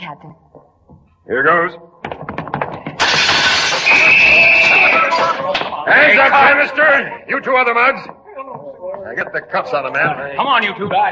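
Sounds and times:
speech: 0.1s - 1.9s, 5.1s - 8.2s, 8.8s - 11.1s
window glass shattering: 3.0s - 5.7s.

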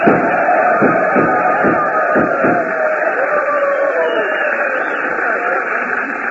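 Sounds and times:
gunshots: 0.0s - 3.2s
cheering ovation: 0.0s - 6.2s.

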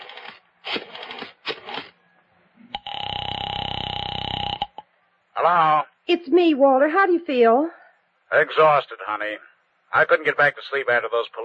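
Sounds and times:
telephone dialing: 0.0s - 1.9s
buzzing ring tone: 2.7s - 4.8s
speech: 5.4s - 11.4s.

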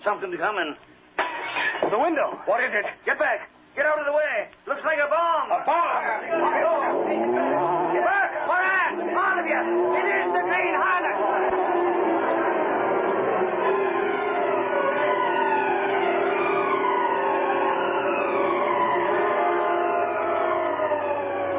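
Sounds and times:
speech: 0.0s - 1.0s, 1.6s - 7.5s
police sirens wailing during a radio-drama car chase: 5.7s - 21.5s
low engine rumble: 6.1s - 21.5s.

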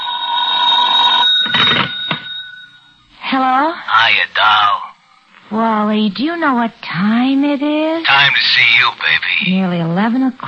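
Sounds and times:
telephone ringing: 0.0s - 3.0s
speech: 3.3s - 4.8s, 5.5s - 10.4s.

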